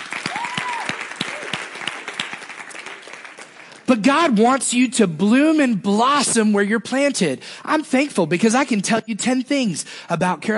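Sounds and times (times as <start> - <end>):
crowd applauding: 0.0 - 3.9
faint whistle or cheer: 0.2 - 1.6
speech: 3.9 - 10.5.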